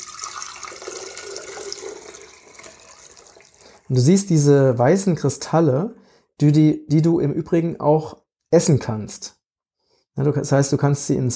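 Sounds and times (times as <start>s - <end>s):
liquid being strained into a new glass: 0.0s - 3.9s
speech: 3.9s - 9.4s, 10.2s - 11.3s.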